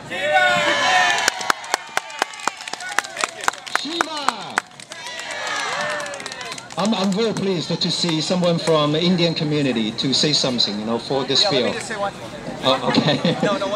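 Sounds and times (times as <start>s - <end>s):
shouting and whooping voices: 0.0s - 6.7s
crowd clapping: 0.9s - 8.8s
speech: 6.8s - 13.7s
laughter: 12.6s - 13.7s.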